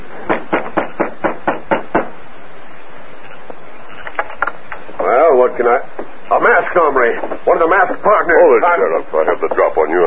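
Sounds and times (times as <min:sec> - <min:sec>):
sharp knocks on a wooden front door: 0:00.2 - 0:02.2
speech: 0:05.6 - 0:10.0.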